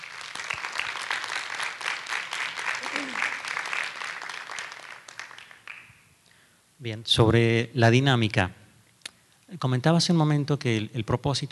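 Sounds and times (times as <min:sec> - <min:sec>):
audience applause: 0:00.0 - 0:05.9
speech: 0:06.8 - 0:08.6, 0:09.5 - 0:11.5.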